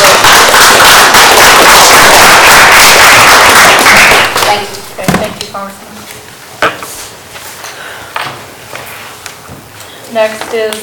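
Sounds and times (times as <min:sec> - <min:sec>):
crowd applauding: 0:00.0 - 0:04.6.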